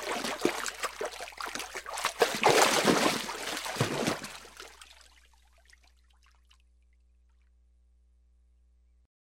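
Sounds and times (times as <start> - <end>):
person splashing in water: 0.0 - 6.6.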